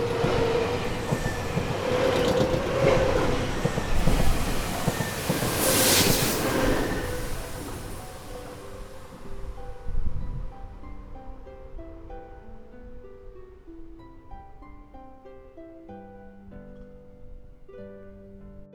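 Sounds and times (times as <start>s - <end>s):
electric train passing at low speed and high speed: 0.0s - 18.5s.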